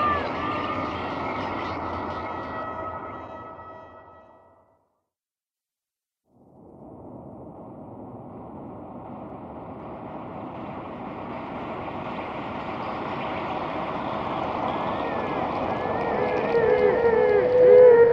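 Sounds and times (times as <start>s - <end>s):
horror screams: 0.0s - 4.1s, 9.4s - 18.1s.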